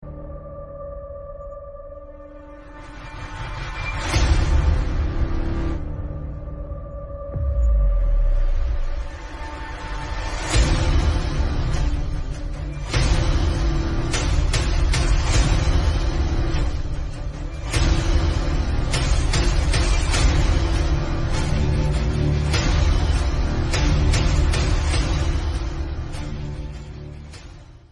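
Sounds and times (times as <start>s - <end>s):
background music ringtone: 0.0s - 27.8s.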